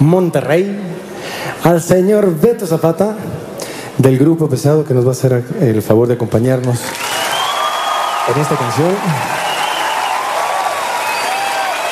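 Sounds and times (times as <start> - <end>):
speech: 0.0 - 3.4, 4.0 - 7.1, 8.2 - 9.4
audience applause: 6.9 - 11.9.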